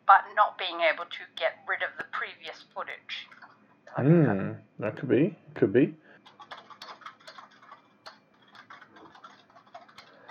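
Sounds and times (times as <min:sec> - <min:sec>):
speech: 0:00.1 - 0:06.0
furious typing on computer keyboard: 0:06.2 - 0:10.3.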